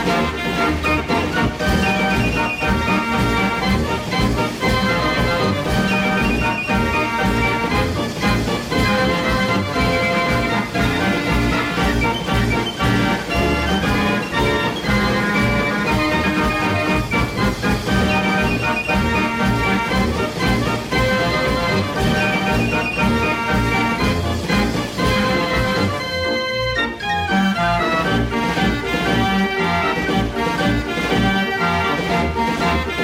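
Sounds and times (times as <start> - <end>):
fair organ playing a busy tune: 0.0 - 33.0.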